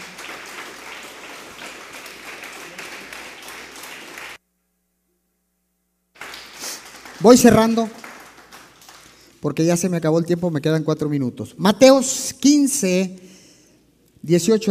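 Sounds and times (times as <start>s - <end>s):
crowd applauding: 0.0s - 4.4s, 6.2s - 9.4s
speech: 7.2s - 8.0s, 9.4s - 13.4s, 14.2s - 14.6s.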